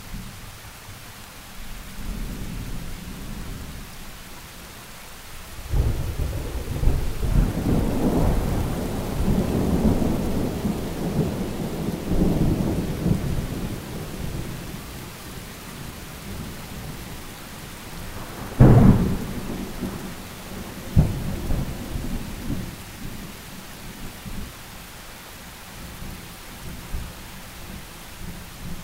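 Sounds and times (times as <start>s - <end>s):
thunder: 5.7s - 14.7s, 18.0s - 22.6s.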